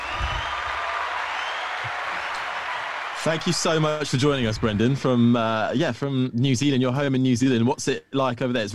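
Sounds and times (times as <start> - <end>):
applause welcoming a show guest: 0.0 - 5.3
speech: 3.2 - 8.7.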